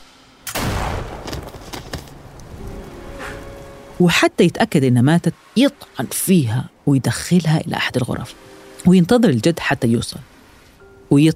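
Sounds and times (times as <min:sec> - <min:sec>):
sharper follow-up bangs: 0:00.0 - 0:02.2
loud gunshot: 0:00.4 - 0:02.0
speech: 0:04.0 - 0:10.3, 0:11.1 - 0:11.3.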